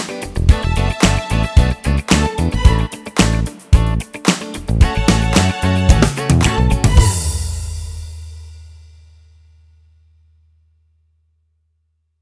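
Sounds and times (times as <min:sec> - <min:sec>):
funky disco music: 0:00.0 - 0:08.0.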